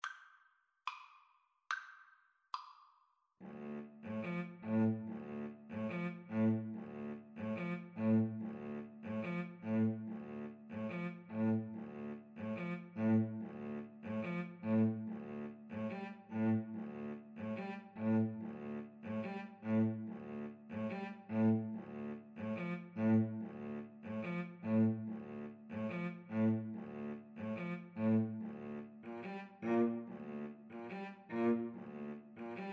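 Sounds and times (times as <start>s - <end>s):
violin and cello duet: 3.4s - 32.7s.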